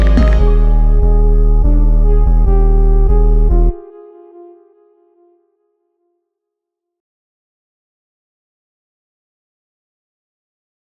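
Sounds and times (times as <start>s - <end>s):
instrumental music: 0.0s - 5.6s.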